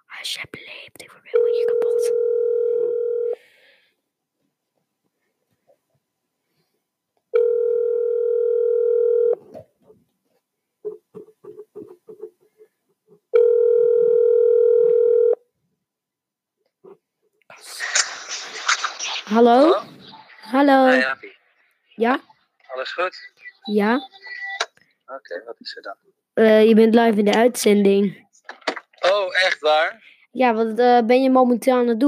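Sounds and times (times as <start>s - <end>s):
speech: 0.2s - 2.3s, 19.4s - 19.9s, 20.6s - 21.4s, 22.0s - 24.4s, 25.1s - 32.0s
phone ringback tone: 1.4s - 3.4s, 7.4s - 9.4s, 13.4s - 15.4s
hissy rustle: 17.6s - 20.4s.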